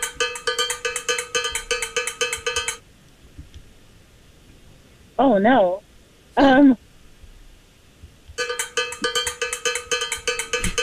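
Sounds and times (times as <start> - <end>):
cowbell struck rapidly: 0.0 - 2.8, 8.4 - 10.8
speech: 5.2 - 5.8, 6.4 - 6.8.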